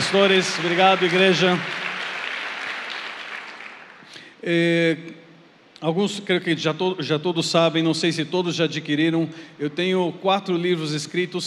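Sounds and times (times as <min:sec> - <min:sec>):
audience applause: 0:00.0 - 0:04.1
speech: 0:00.1 - 0:01.8, 0:04.4 - 0:05.2, 0:05.8 - 0:11.4.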